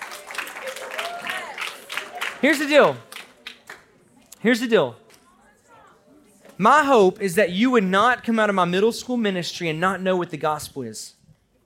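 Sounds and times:
audience applause: 0.0s - 3.9s
speech: 2.4s - 3.1s, 4.4s - 5.0s, 6.6s - 11.2s.

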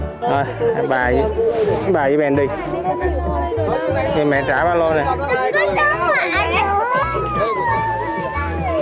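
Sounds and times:
speech: 0.2s - 5.6s
young child crying and screaming: 5.6s - 8.7s.

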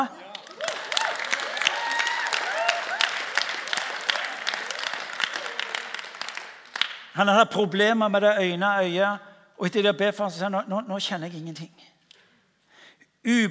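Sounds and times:
audience applause: 0.0s - 7.0s
speech: 7.2s - 11.9s, 13.2s - 13.5s.

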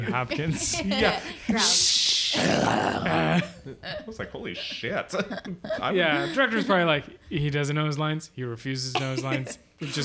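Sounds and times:
speech: 0.0s - 10.0s
person imitating a growl: 2.3s - 3.4s
laughter: 3.1s - 7.1s, 9.0s - 10.0s.

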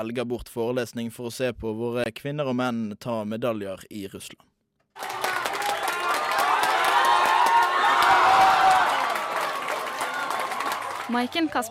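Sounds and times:
speech: 0.0s - 5.2s, 11.1s - 11.6s
crowd cheering in a packed pub: 5.0s - 11.6s
dense clapping: 5.0s - 11.6s
excited shouting: 5.0s - 11.6s.

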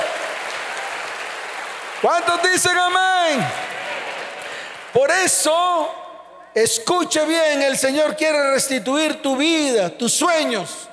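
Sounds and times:
audience applause: 0.0s - 5.5s
speech: 2.0s - 3.8s, 4.9s - 6.0s, 6.6s - 10.9s.

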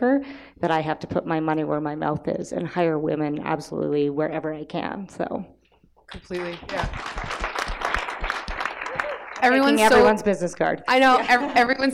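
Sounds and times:
speech: 0.0s - 7.2s, 9.4s - 11.9s
audience applause: 6.2s - 9.9s.

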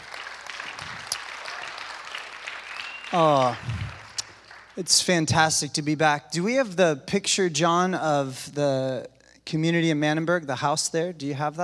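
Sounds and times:
round of applause: 0.0s - 4.9s
speech: 3.1s - 4.0s, 4.8s - 11.6s.

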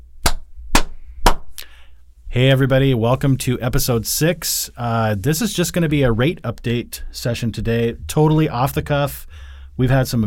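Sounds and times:
hand claps: 0.2s - 1.7s
speech: 2.4s - 10.2s.

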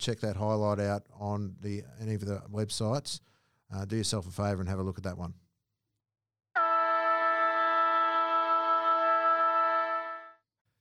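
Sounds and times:
speech: 0.0s - 5.4s
footy ground siren blast: 6.6s - 10.3s.

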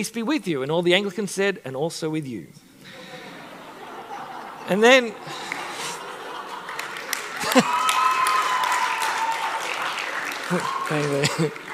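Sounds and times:
speech: 0.0s - 3.1s, 4.7s - 5.6s, 7.6s - 7.8s, 10.5s - 11.7s
laughter: 2.8s - 8.1s, 10.5s - 11.7s
audience applause: 3.8s - 11.7s.

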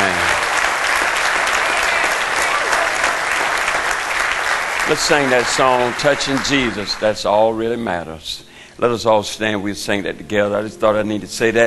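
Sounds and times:
audience round of applause: 0.0s - 7.4s
speech: 4.9s - 11.6s.

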